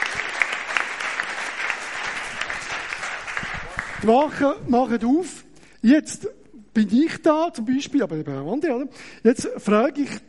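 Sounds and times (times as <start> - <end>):
audience applause: 0.0 - 4.3
speech: 4.0 - 10.2.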